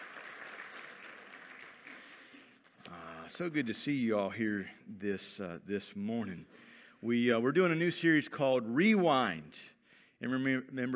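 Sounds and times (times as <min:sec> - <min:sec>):
audience applause: 0:00.0 - 0:02.6
speech: 0:02.9 - 0:10.9.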